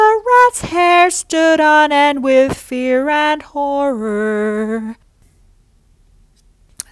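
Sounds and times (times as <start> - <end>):
person singing: 0.0 - 5.0.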